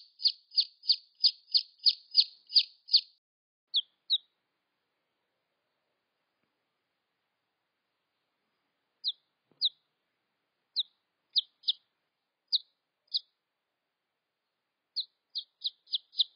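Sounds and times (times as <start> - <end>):
red junglefowl chick peeps: 0.0 - 4.4, 9.0 - 9.8, 10.8 - 11.8, 12.5 - 13.4, 15.0 - 16.3.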